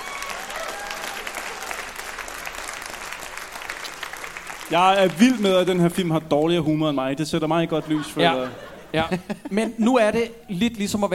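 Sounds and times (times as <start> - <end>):
applause: 0.0 - 6.5
speech: 4.7 - 11.1
laughter: 7.4 - 10.6.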